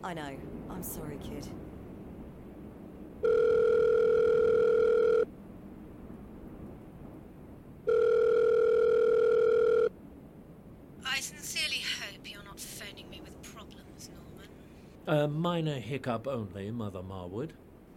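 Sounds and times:
speech: 0.0s - 1.8s, 15.1s - 17.6s
telephone line tone: 3.2s - 5.3s, 7.9s - 9.9s.

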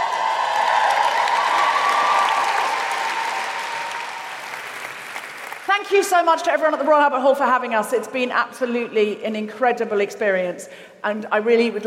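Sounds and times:
audience cheering: 0.0s - 5.5s
speech: 5.9s - 11.8s.

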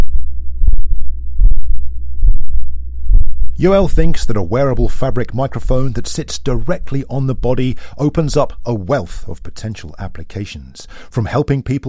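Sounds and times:
heartbeat picked up by a fabric microphone vest: 0.0s - 10.4s
constant low rumble: 0.0s - 11.0s
speech: 3.6s - 11.8s.

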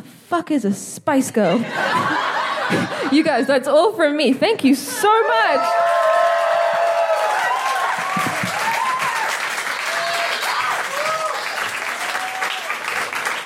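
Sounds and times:
speech: 0.3s - 2.1s, 2.7s - 6.1s
laughter: 1.4s - 3.5s
audience applause: 5.4s - 13.4s.

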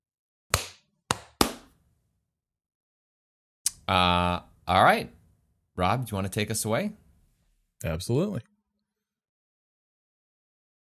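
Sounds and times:
hand claps for recording sync: 0.5s - 1.8s
speech: 3.9s - 5.2s, 5.8s - 7.0s, 7.8s - 8.5s.

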